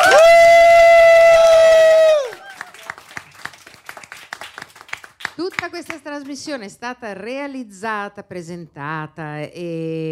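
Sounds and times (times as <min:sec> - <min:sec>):
audience applause: 0:00.0 - 0:05.6
speech: 0:06.2 - 0:10.0.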